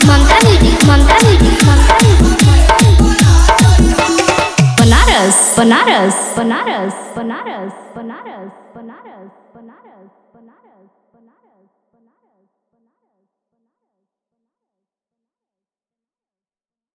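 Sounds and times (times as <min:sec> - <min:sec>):
Bhojpuri DJ remix song: 0:00.0 - 0:07.2.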